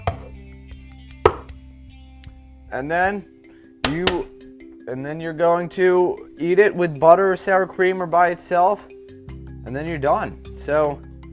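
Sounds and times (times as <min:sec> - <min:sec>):
knife chopping firm mamaliga on a wooden cutting board: 0:00.0 - 0:00.3, 0:01.3 - 0:01.5
speech: 0:02.7 - 0:04.3, 0:04.9 - 0:08.9, 0:09.7 - 0:11.0.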